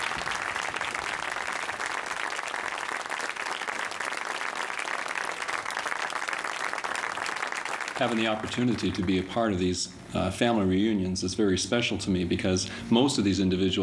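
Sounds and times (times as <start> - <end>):
audience applause: 0.0 - 9.2
speech: 8.0 - 13.8.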